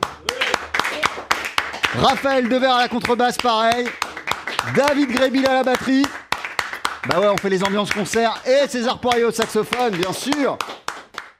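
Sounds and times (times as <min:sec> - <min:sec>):
small audience clapping after a piano performance: 0:00.0 - 0:11.3
speech: 0:02.0 - 0:04.0, 0:04.6 - 0:06.2, 0:07.0 - 0:10.8.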